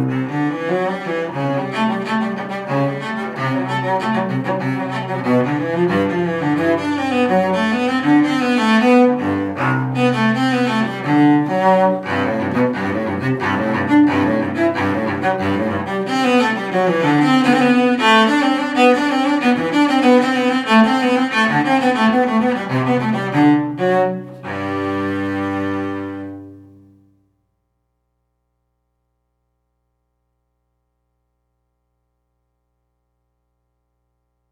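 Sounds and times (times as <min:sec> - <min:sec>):
cello suite courante: 0:00.0 - 0:27.2.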